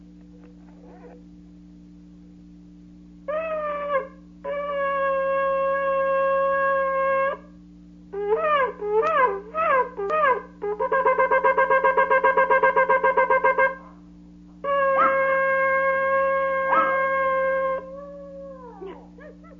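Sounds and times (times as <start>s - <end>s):
low hum: 0.0s - 19.5s
dog howling: 3.3s - 7.5s, 8.2s - 13.8s, 14.6s - 19.5s.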